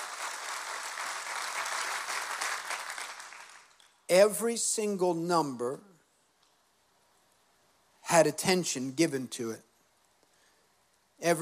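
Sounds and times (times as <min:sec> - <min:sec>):
crowd clapping: 0:00.0 - 0:03.9
speech: 0:04.1 - 0:05.9, 0:08.1 - 0:09.7, 0:11.2 - 0:11.4.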